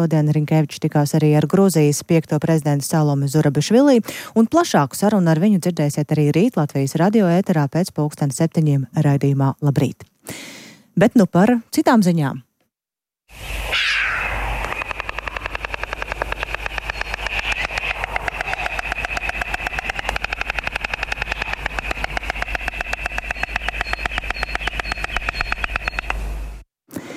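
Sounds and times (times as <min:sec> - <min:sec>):
speech: 0:00.0 - 0:12.5
white storks clattering bills: 0:14.5 - 0:26.2.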